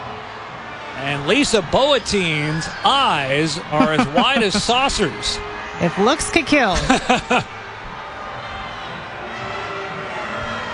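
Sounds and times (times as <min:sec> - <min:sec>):
stadium crowd grumbling: 0:00.0 - 0:10.7
speech: 0:01.0 - 0:07.6
laughter: 0:02.9 - 0:05.4, 0:06.5 - 0:07.7.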